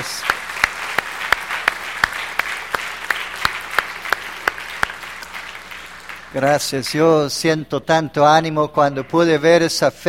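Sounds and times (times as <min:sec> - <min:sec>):
audience applauding: 0:00.0 - 0:06.9
speech: 0:06.3 - 0:10.0.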